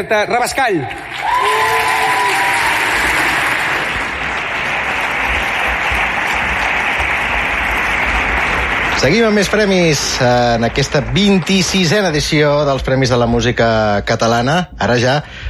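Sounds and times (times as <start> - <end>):
speech: 0.0 - 1.9, 9.0 - 15.4
loud sustained applause from a large crowd: 0.5 - 12.7.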